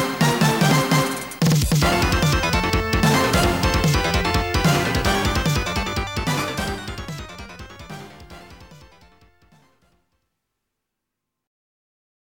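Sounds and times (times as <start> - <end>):
3D stage background music: 0.0 - 9.9.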